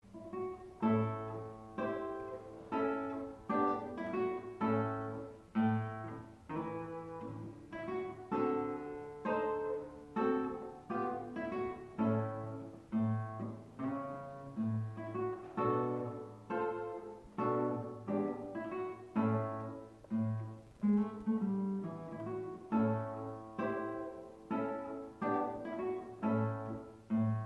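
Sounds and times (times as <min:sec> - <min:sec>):
jazzy Spanish guitar blues tune: 0:00.0 - 0:27.4.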